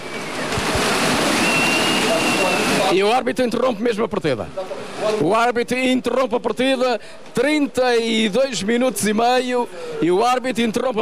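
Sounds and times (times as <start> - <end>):
rain falling: 0.0 - 3.0
speech: 2.9 - 10.9.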